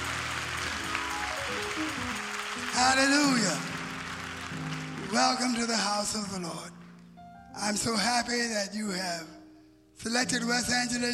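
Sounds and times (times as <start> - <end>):
audience clapping hands: 0.0 - 7.1
speech: 2.8 - 3.7, 5.1 - 6.8, 7.6 - 9.4, 10.0 - 11.1.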